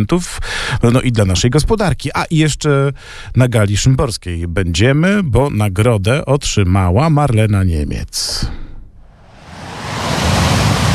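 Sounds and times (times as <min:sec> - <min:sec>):
speech: 0:00.0 - 0:08.6
ocean waves crashing on shore: 0:09.0 - 0:10.9.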